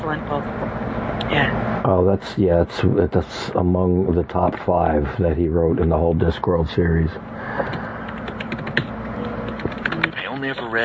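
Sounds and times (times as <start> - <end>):
low hum: 0.0 - 10.8
speech: 0.1 - 7.8
furious typing on a computer keyboard picked up by a built-in microphone: 7.6 - 10.2.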